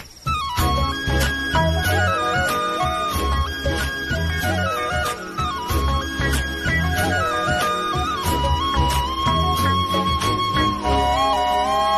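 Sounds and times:
love background music ringtone: 0:00.3 - 0:11.9.

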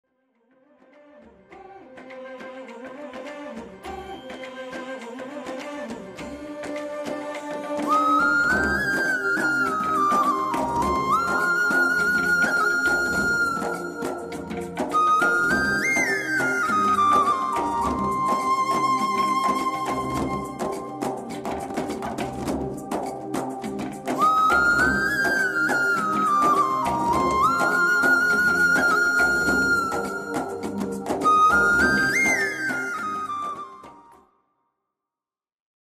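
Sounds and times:
flute ringtone song: 0:07.7 - 0:34.2.

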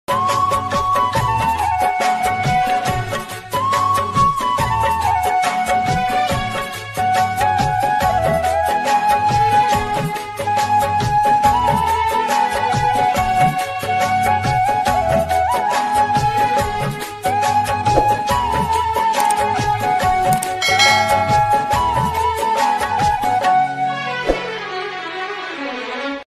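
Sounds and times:
sad instrumental ringtone music: 0:00.1 - 0:26.2.

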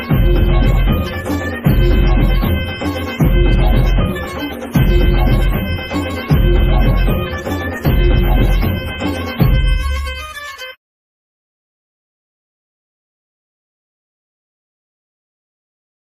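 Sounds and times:
background music song: 0:00.0 - 0:10.8.

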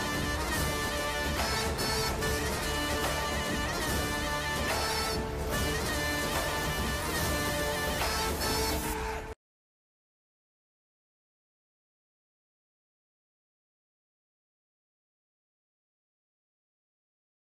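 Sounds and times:
police station entry background music: 0:00.0 - 0:09.4.

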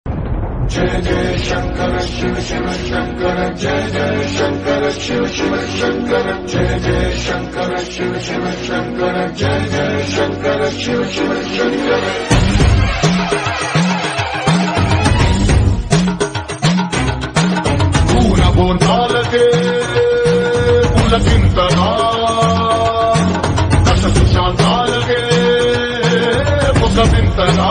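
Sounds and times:
movie ringtone background music: 0:00.1 - 0:27.6.

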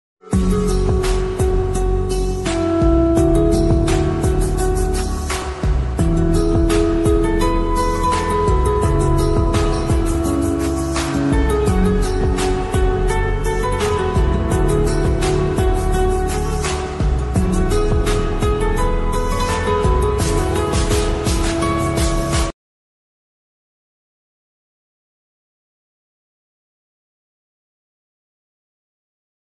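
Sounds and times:
slowed reverb romantic instrumental ringtone: 0:00.3 - 0:22.5.

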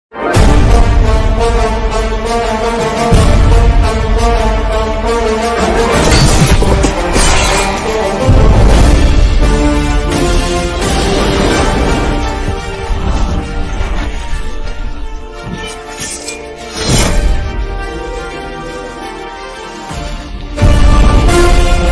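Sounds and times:
trailer background music: 0:00.1 - 0:21.9.

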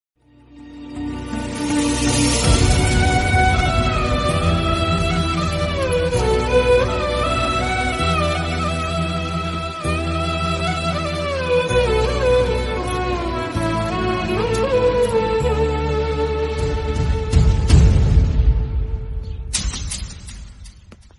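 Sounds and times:
sad Telugu movie background music: 0:00.2 - 0:20.8.

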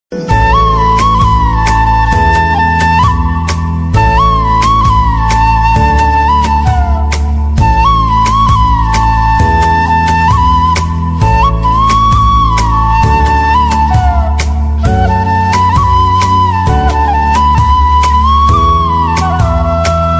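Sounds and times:
instrumental bansuri flute ringtone: 0:00.2 - 0:20.1.

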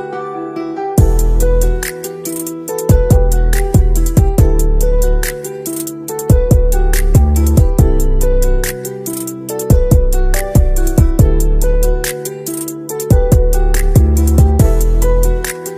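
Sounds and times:
beat music ringtone: 0:01.0 - 0:15.7.

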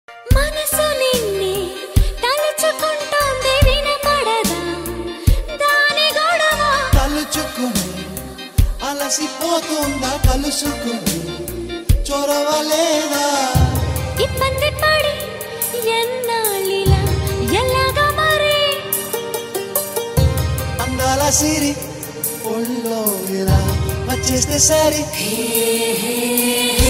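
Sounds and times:
Telugu love songs: 0:00.1 - 0:26.8.

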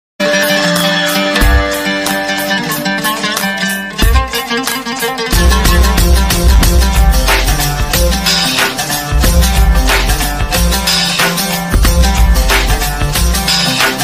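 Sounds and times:
background music: 0:00.2 - 0:14.0.

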